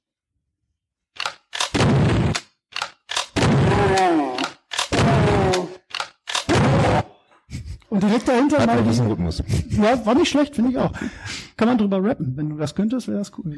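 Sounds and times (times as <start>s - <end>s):
1994 video game shotgun sound effect: 1.2s - 7.0s
laughter: 6.5s - 10.4s
speech: 7.9s - 13.5s.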